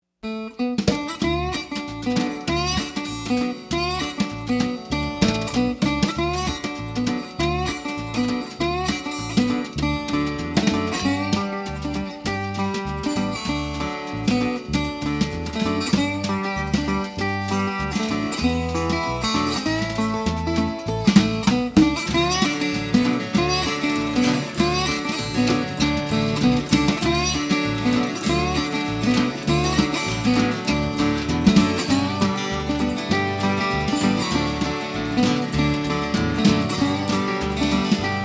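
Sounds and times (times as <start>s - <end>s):
guitar rag music: 0.2s - 38.2s.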